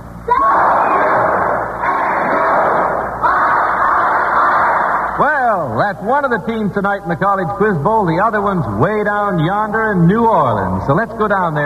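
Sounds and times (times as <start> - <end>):
students cheering for their team: 0.3 - 5.2
speech: 5.9 - 11.6.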